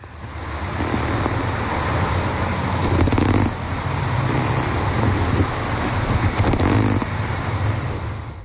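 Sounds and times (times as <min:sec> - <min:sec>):
hissing noise: 0:00.0 - 0:08.4
goldsinny wrasse fish sounds underwater: 0:00.6 - 0:07.2.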